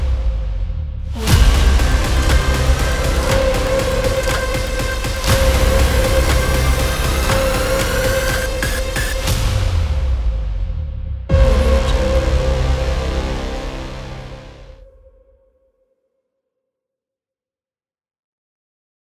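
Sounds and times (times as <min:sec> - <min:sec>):
dark massive trailer intro music: 0:00.0 - 0:15.3.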